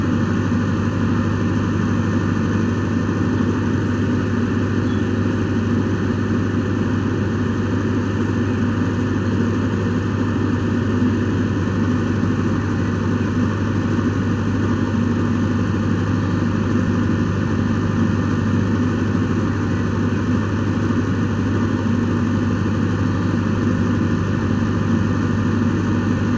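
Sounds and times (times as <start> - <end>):
generator hum: 0.0 - 26.3.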